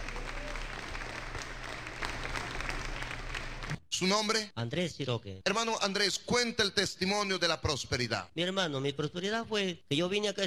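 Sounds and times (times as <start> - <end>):
audience applause: 0.0 - 3.8
speech: 4.0 - 10.4.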